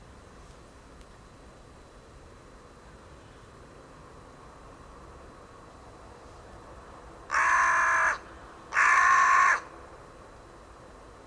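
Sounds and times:
bird cawing: 7.3 - 9.8.

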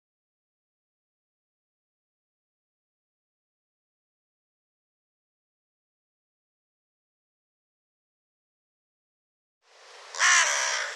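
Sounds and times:
harsh bird caws: 10.1 - 10.9.

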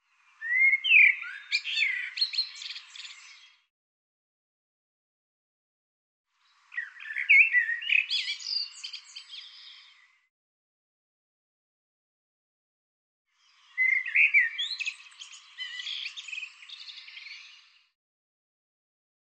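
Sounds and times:
bird twittering with sweeping notes: 0.4 - 3.3, 6.7 - 9.9, 13.8 - 17.5.

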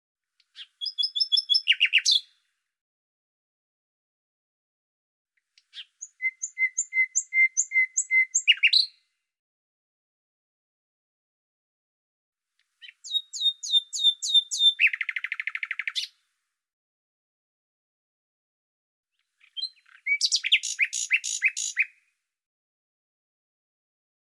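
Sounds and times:
bird song: 0.4 - 2.5, 5.4 - 9.2, 12.6 - 16.3, 19.2 - 22.2.

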